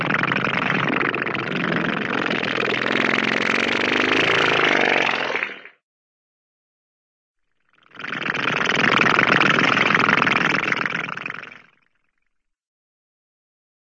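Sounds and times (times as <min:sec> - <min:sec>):
funny cartoon airplane: 0:00.0 - 0:05.8, 0:07.8 - 0:11.9.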